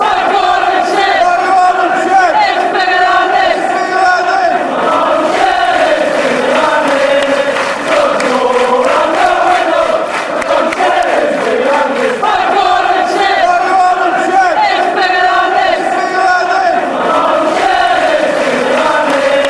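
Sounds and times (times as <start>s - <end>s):
fans chanting: 0.0s - 19.4s.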